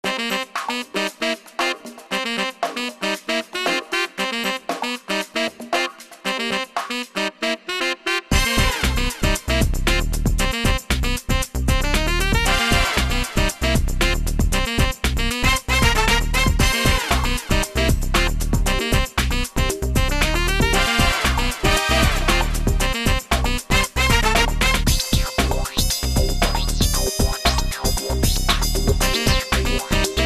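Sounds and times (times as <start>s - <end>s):
brass instruments: 0.0s - 30.2s.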